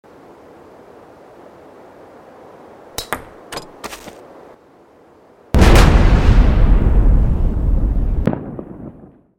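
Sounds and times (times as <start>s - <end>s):
explosives scene: 5.6s - 9.3s.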